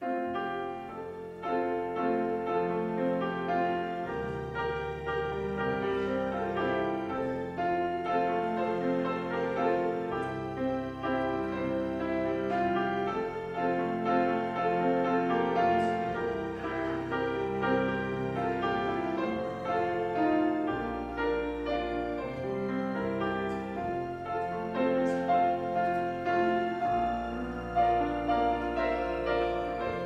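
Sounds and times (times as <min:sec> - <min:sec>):
prelude music: 0:00.0 - 0:30.0.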